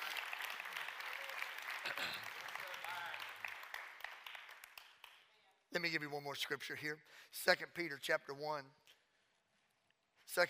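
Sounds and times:
audience clapping hands: 0.0 - 5.5
speech: 1.8 - 2.3, 5.8 - 8.8, 10.3 - 10.4.

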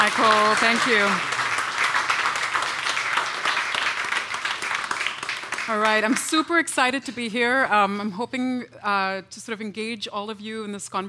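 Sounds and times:
audience applause: 0.0 - 6.3
speech: 0.1 - 1.4, 5.7 - 11.0.

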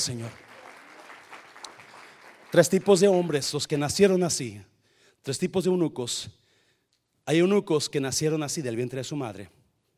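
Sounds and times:
speech: 0.0 - 0.5, 2.5 - 6.4, 7.2 - 9.6
crowd applause: 0.0 - 3.0.

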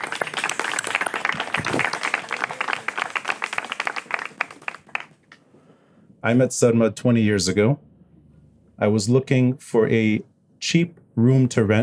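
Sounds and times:
audience applause: 0.0 - 5.2
speech: 6.2 - 7.8, 8.8 - 11.8.

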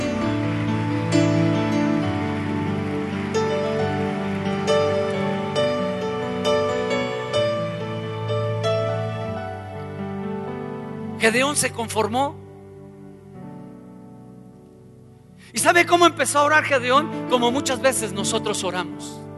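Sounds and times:
church audience applauding: 0.0 - 9.6
speech: 11.2 - 12.4, 15.6 - 19.3.

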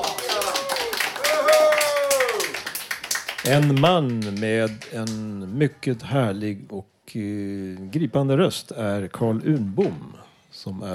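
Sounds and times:
crowd applause: 0.0 - 5.2
speech: 3.4 - 10.9.

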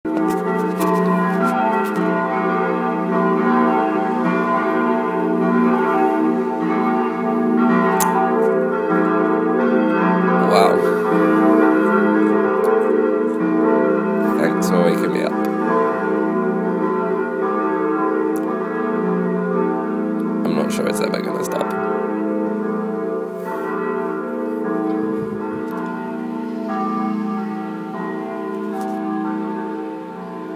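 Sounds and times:
Sunday morning church bells pealing: 0.1 - 30.5
faint voices: 10.4 - 11.1, 14.2 - 15.4, 20.5 - 21.7.

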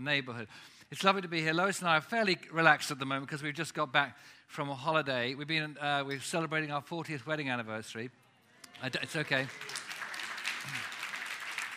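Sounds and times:
speech: 0.0 - 8.2, 8.8 - 9.9
audience applause: 8.8 - 11.7.

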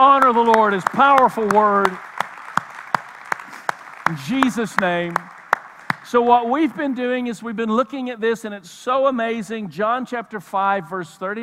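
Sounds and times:
speech: 0.0 - 2.1, 4.1 - 5.3, 6.1 - 11.4
audience clapping: 0.0 - 7.5.

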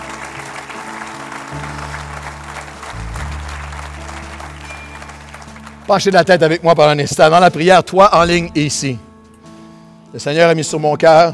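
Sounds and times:
audience applauding: 0.0 - 7.0
speech: 5.9 - 9.1, 10.1 - 11.3.

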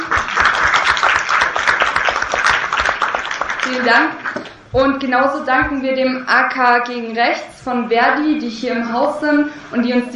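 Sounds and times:
audience applause: 0.0 - 4.5
speech: 3.7 - 10.1.

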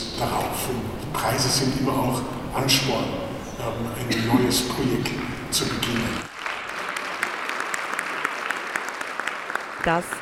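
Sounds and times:
speech: 0.2 - 6.3, 9.8 - 10.2
audience applause: 5.0 - 10.2.

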